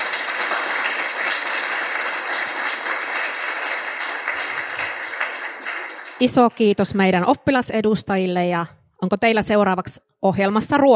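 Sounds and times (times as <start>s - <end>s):
audience applause: 0.0s - 6.4s
speech: 6.2s - 10.9s.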